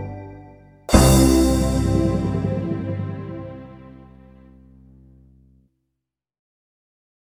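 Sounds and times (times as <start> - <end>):
piano octave warm-up: 0.9 - 3.6.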